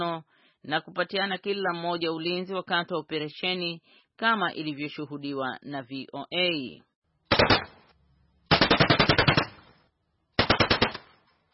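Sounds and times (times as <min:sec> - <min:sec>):
speech: 0:00.0 - 0:07.5
warning automatic gunfire from Cameroonian soldiers at a fishing boat: 0:07.3 - 0:07.8, 0:08.5 - 0:09.7, 0:10.4 - 0:11.2.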